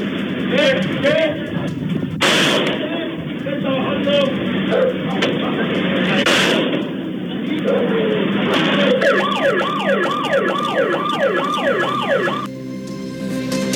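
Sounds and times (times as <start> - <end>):
steady noise: 0.0 - 12.5
neighborhood alarm blaring during a robbery: 8.8 - 12.5.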